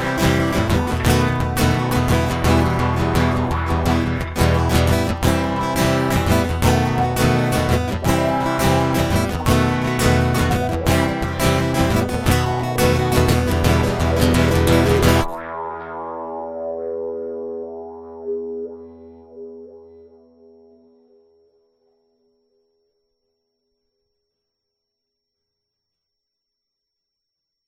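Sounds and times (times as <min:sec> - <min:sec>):
electric guitar interlude: 0:00.0 - 0:21.6.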